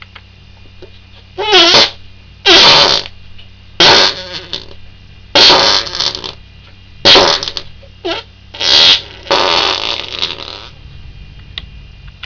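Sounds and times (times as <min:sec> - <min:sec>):
fart: 0:01.4 - 0:03.1, 0:03.8 - 0:04.8, 0:05.4 - 0:06.4, 0:07.0 - 0:10.8.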